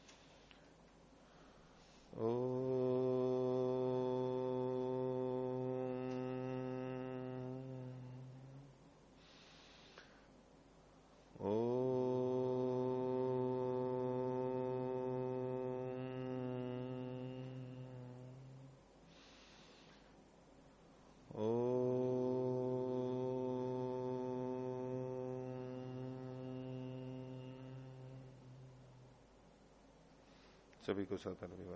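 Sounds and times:
chanting in a steady low voice: 0:01.8 - 0:10.2, 0:11.2 - 0:20.2, 0:21.1 - 0:29.3
speech: 0:02.1 - 0:02.5, 0:30.9 - 0:31.7.

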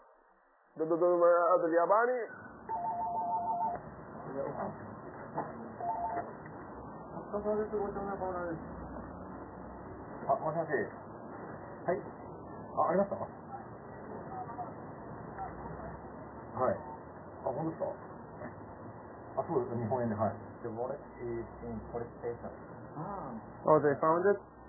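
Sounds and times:
speech: 0:00.8 - 0:02.8, 0:04.4 - 0:06.5, 0:07.3 - 0:08.8, 0:10.3 - 0:11.0, 0:11.9 - 0:12.1, 0:12.8 - 0:13.4, 0:17.6 - 0:18.1, 0:19.5 - 0:24.6
telephone keypad tones dialing police headquarters in Tokyo: 0:02.7 - 0:03.8.

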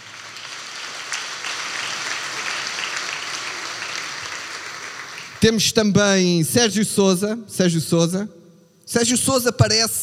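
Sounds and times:
audience at a comedy roast applauding: 0:00.0 - 0:05.4
speech: 0:05.4 - 0:10.0.

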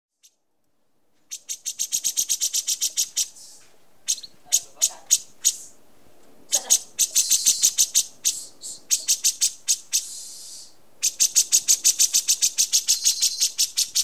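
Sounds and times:
Horsfield's bush lark song of dry ticking notes and low whistles: 0:01.2 - 0:05.8, 0:06.5 - 0:14.0.

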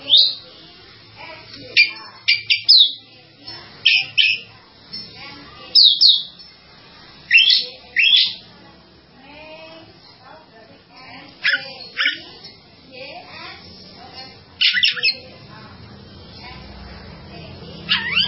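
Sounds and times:
bird song: 0:00.0 - 0:00.5, 0:01.7 - 0:04.5, 0:05.7 - 0:06.6, 0:07.3 - 0:08.5, 0:14.6 - 0:15.3, 0:17.9 - 0:18.2.

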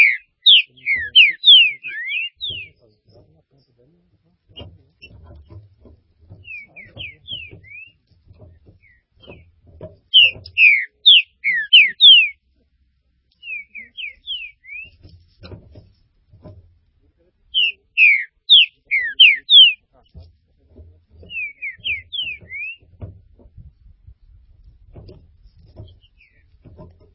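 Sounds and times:
green-winged saltator whistling: 0:00.0 - 0:02.8, 0:06.4 - 0:08.0, 0:10.2 - 0:12.4, 0:13.4 - 0:14.9, 0:17.6 - 0:19.8, 0:21.3 - 0:22.8.

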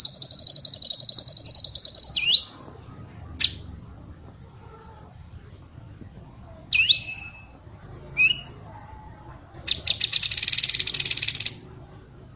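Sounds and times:
bird song of sharp high chirps, slurred whistles and buzzy rattles: 0:00.0 - 0:02.6, 0:06.7 - 0:07.5, 0:08.2 - 0:08.6, 0:09.7 - 0:11.6.

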